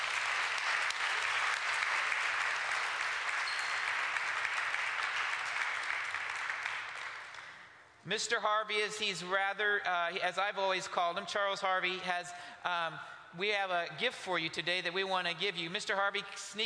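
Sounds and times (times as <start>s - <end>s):
church congregation applauding as a man is welcomed forward: 0.0s - 7.6s
speech: 8.0s - 16.6s.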